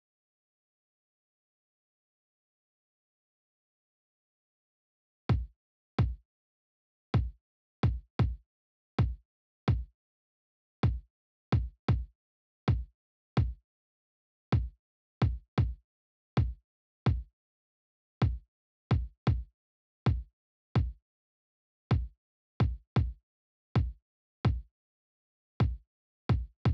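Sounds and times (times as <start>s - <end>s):
kick drum: 5.3s - 6.2s, 7.2s - 8.4s, 9.0s - 10.0s, 10.8s - 12.1s, 12.7s - 13.6s, 14.5s - 15.8s, 16.4s - 17.3s, 18.2s - 19.5s, 20.1s - 21.0s, 21.9s - 23.2s, 23.8s - 24.7s, 25.6s - 26.7s.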